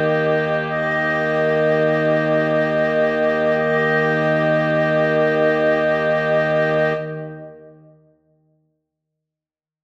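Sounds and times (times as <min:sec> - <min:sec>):
woodwind quintet playing a prelude: 0:00.0 - 0:07.8.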